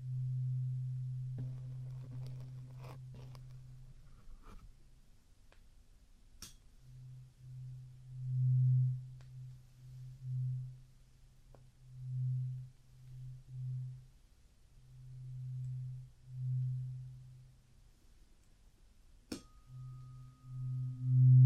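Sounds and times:
low humming tone: 0.0s - 4.6s, 6.8s - 18.5s, 19.4s - 21.4s
faint scratchy ticks: 1.4s - 4.6s.

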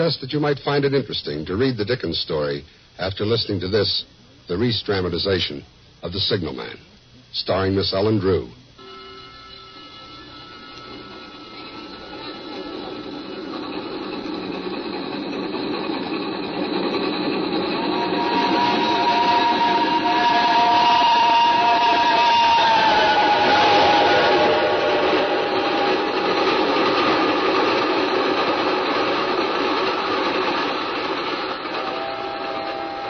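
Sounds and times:
speech: 0.0s - 8.6s
high screeching squeal: 8.8s - 14.9s, 16.4s - 27.4s
train rushing past into a tunnel: 9.9s - 33.0s.

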